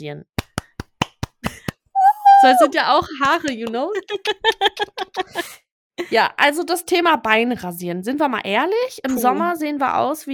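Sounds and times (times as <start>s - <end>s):
speech: 0.0s - 0.4s, 2.4s - 10.3s
hand clapping: 0.4s - 1.9s, 3.2s - 5.3s
laughter: 4.0s - 5.6s.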